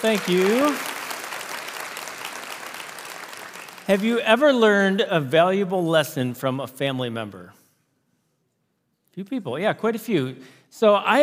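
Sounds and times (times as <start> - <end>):
speech: 0.0 - 0.9, 3.9 - 7.6, 9.2 - 11.2
audience applauding to welcome a campus pastor to the stage: 0.0 - 4.6.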